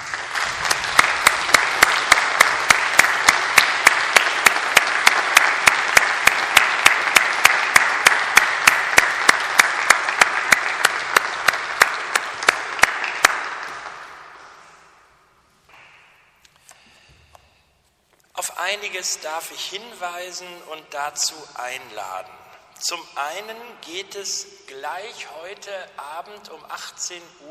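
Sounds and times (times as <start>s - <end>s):
audience applause for musicians: 0.0s - 14.5s
speech: 18.8s - 27.4s.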